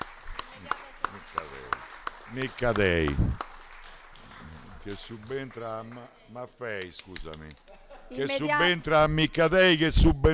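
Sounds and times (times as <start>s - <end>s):
hand claps at a council meeting welcoming a new councillor: 0.0s - 6.0s, 6.8s - 7.8s
speech: 2.3s - 3.4s, 4.8s - 10.3s.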